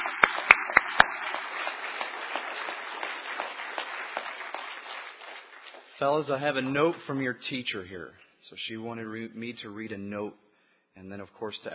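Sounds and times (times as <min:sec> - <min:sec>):
audience applause: 0:00.0 - 0:07.0
speech: 0:06.0 - 0:10.4, 0:11.0 - 0:11.7.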